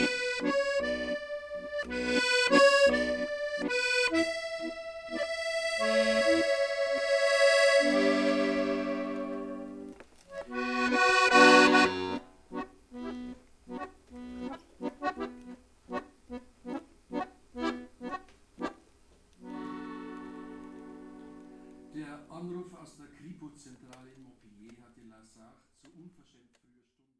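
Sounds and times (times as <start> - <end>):
hurdy-gurdy: 0.0 - 15.6, 19.4 - 22.0.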